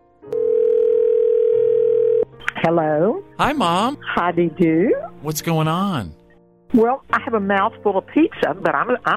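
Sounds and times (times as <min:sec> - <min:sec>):
steady telephone tone: 0:00.3 - 0:02.3
speech: 0:02.7 - 0:09.1.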